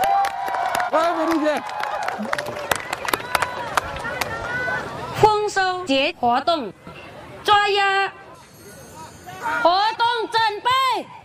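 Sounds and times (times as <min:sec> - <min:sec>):
audience applause: 0:00.0 - 0:04.8
speech: 0:00.9 - 0:02.8, 0:05.8 - 0:08.2, 0:09.4 - 0:11.2.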